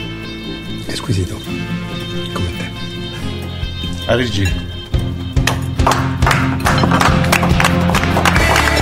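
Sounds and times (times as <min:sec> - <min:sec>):
speech: 0:01.0 - 0:02.5, 0:04.1 - 0:04.8
family seated at the counter applauding: 0:05.4 - 0:08.8.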